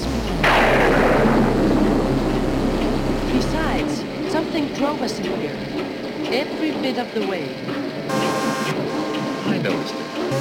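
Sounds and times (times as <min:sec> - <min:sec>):
thunder from a storm rumbling: 0:00.4 - 0:06.8
speech: 0:04.6 - 0:08.8, 0:09.6 - 0:10.3.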